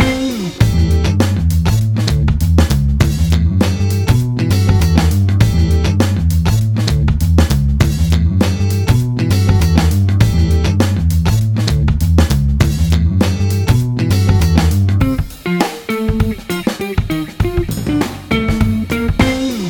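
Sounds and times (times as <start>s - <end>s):
jazz beats: 0.0s - 19.6s.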